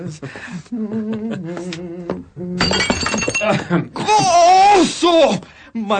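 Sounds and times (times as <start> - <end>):
speech: 0.0 - 5.9
person singing: 0.7 - 2.8
small jug shattering on the floor: 2.6 - 3.6.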